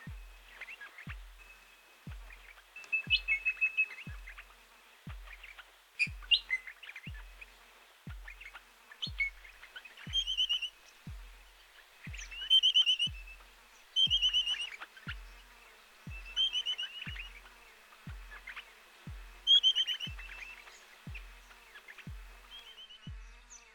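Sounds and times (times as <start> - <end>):
parrot soundscape: 0.0 - 23.6.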